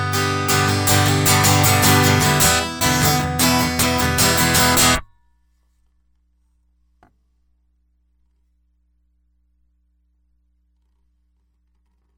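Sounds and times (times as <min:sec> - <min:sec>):
guitar loop: 0:00.0 - 0:05.0.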